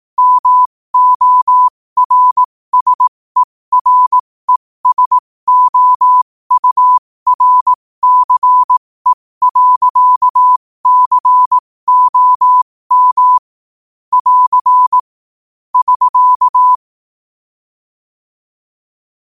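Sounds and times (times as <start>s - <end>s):
morse code at 5 wpm: 0.2s - 13.5s, 14.1s - 15.0s, 15.8s - 16.8s.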